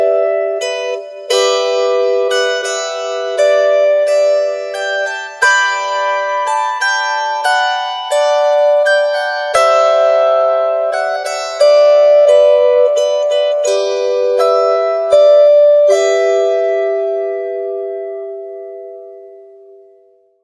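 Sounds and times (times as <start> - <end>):
lap harp: 0.0 - 19.9.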